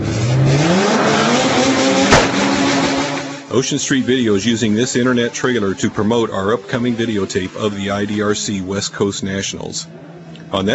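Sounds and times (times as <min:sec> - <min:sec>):
race car engines roaring at a race: 0:00.0 - 0:10.7
sharp burst: 0:01.1 - 0:04.1
speech: 0:03.6 - 0:10.7.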